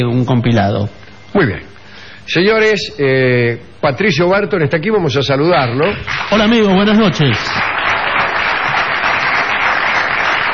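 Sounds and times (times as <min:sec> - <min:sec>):
speech: 0:00.0 - 0:01.7, 0:02.3 - 0:07.9
audience applause: 0:06.1 - 0:10.5.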